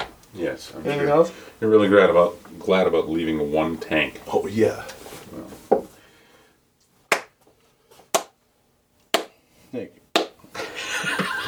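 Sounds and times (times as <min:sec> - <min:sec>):
speech: 0:00.4 - 0:05.6, 0:09.7 - 0:10.0
sarcastic hand clap: 0:07.1 - 0:08.4, 0:09.0 - 0:09.4, 0:10.1 - 0:10.4
laughter: 0:10.6 - 0:11.4.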